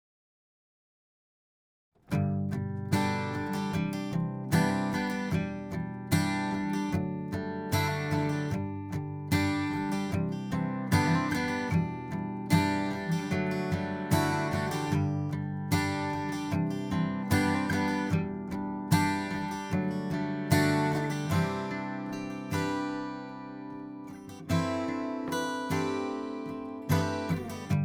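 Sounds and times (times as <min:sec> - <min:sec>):
acoustic guitar: 0:02.0 - 0:27.8.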